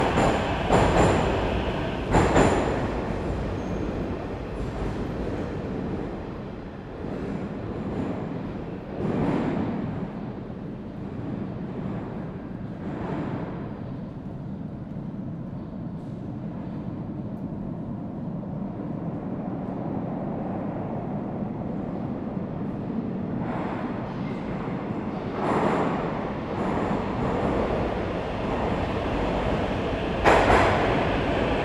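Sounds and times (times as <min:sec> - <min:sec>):
subway train departing from platform: 0:00.0 - 0:08.9, 0:18.7 - 0:31.6
subway train arriving at platform: 0:00.0 - 0:13.5, 0:15.5 - 0:31.6.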